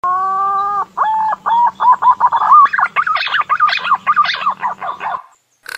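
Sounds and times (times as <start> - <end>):
green pigeon whistling song: 0.1 - 5.3.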